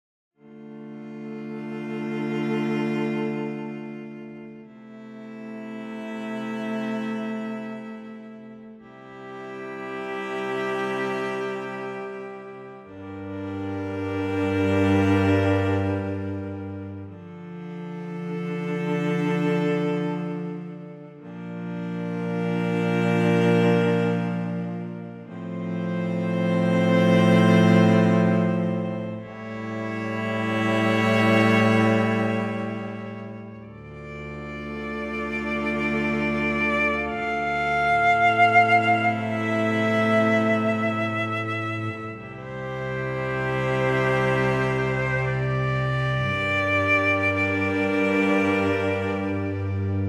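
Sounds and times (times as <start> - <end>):
cello: 0.4 - 50.0.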